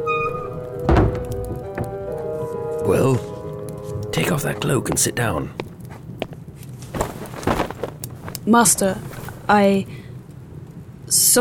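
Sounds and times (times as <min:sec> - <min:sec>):
steady tonal hum: 0:00.0 - 0:11.4
door shutting with thud: 0:00.1 - 0:02.1
speech: 0:02.9 - 0:03.4, 0:04.2 - 0:05.6, 0:08.5 - 0:10.0.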